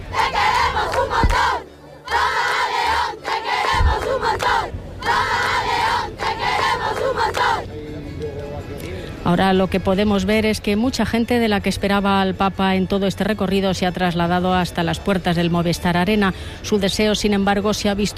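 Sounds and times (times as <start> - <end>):
crowd shouting and cheering: 0.0 - 7.6
speech: 9.3 - 18.1.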